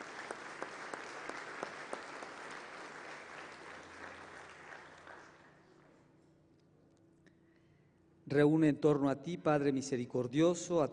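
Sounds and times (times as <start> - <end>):
audience applause: 0.0 - 5.7
speech: 8.3 - 10.9.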